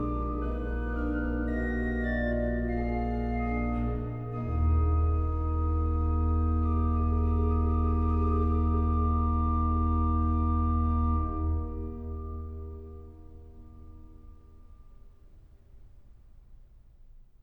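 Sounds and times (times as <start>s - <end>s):
organ playing a hymn: 0.0s - 13.4s.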